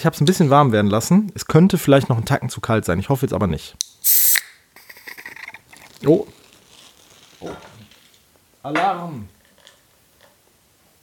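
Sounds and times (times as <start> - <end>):
speech: 0.0 - 4.4, 6.0 - 6.4, 7.4 - 7.7, 8.6 - 9.4
beer can opened, foaming over: 4.0 - 8.3.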